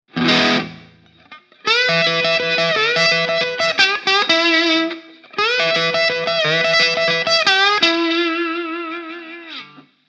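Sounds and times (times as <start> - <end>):
bottleneck slide guitar blues lick: 0.1 - 9.9.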